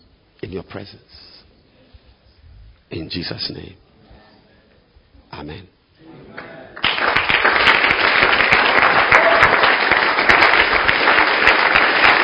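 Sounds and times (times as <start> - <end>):
speech: 0.5 - 1.4, 2.9 - 3.8, 5.4 - 5.8
audience hand clapping: 6.4 - 12.2.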